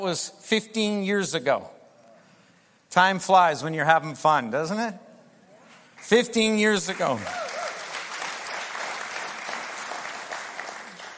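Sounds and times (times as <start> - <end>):
speech: 0.0 - 1.8, 2.9 - 5.0, 6.0 - 7.4
smattering of applause: 6.7 - 11.1.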